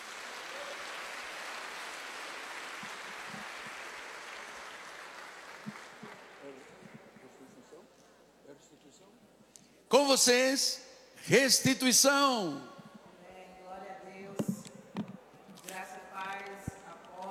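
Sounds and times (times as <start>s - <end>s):
sustained crowd applause: 0.0s - 7.2s
speech: 10.0s - 12.7s.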